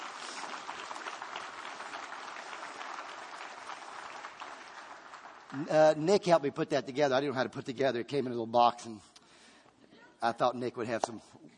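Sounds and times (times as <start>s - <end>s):
room full of people applauding: 0.0s - 6.4s
speech: 5.5s - 9.1s, 10.2s - 11.5s.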